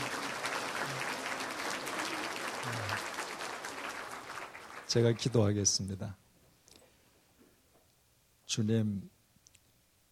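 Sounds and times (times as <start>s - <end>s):
audience applause: 0.0s - 5.8s
speech: 4.9s - 6.2s, 8.6s - 9.2s.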